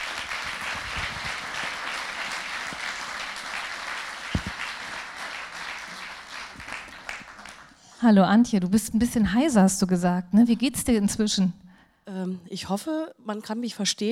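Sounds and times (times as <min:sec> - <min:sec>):
audience applause: 0:00.0 - 0:07.8
speech: 0:08.0 - 0:14.1.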